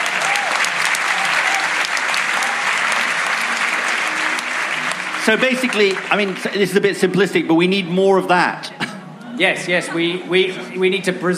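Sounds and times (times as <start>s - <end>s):
audience applause: 0.0s - 7.4s
speech: 5.3s - 8.7s, 9.4s - 11.3s.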